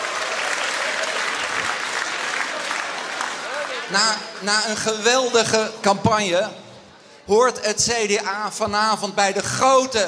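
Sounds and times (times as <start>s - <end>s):
CDA party supporters cheering and applauding on election night: 0.0s - 5.1s
speech: 3.9s - 6.6s, 7.3s - 10.0s.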